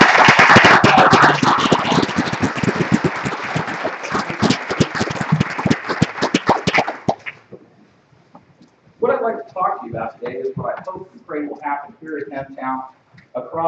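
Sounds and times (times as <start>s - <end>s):
crowd applauding: 0.0s - 7.4s
speech: 12.4s - 13.0s.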